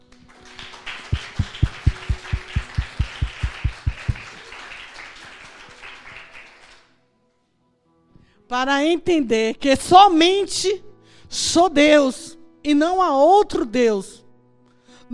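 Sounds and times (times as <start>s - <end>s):
audience applauding: 0.1s - 6.9s
rhythmic claps in unison: 0.1s - 6.9s
speech: 8.5s - 14.1s.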